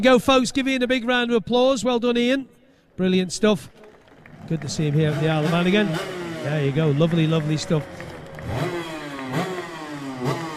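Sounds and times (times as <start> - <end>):
speech: 0.0 - 3.8, 4.5 - 8.8
racing motorcycle engine revving: 4.3 - 10.5.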